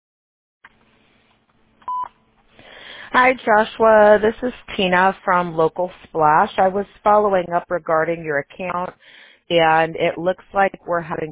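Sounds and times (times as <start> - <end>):
telephone keypad beep: 1.9 - 2.1
speech: 3.2 - 11.2.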